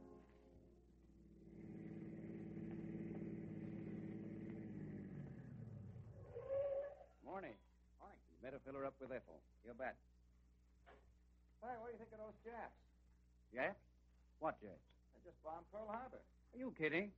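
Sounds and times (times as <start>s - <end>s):
motorist's car engine pulling into a filling station in San Francisco: 1.4s - 6.3s
speech: 8.4s - 10.1s, 11.6s - 12.9s, 13.5s - 17.1s.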